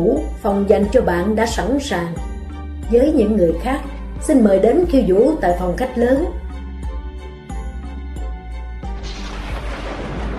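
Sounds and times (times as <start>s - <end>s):
speech: 0.0s - 2.3s, 2.9s - 6.4s
heavy thunder of a storm rumbling: 8.9s - 10.3s.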